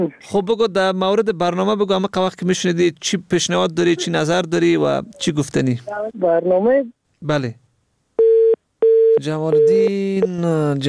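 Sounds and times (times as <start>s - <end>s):
speech: 0.0s - 7.6s, 9.2s - 10.8s
telephone busy tone after radio phone-in call drops: 8.2s - 10.4s.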